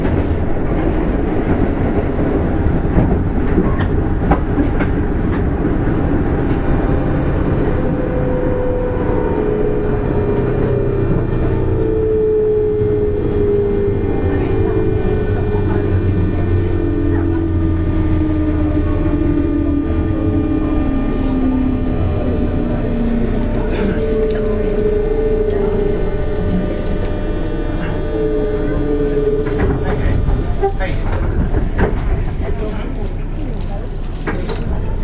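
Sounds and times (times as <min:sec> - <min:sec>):
JR West 201 series train running on the Osaka Loop Line: 0:00.0 - 0:35.0
train motor whining: 0:06.9 - 0:30.7
voices: 0:07.8 - 0:35.0.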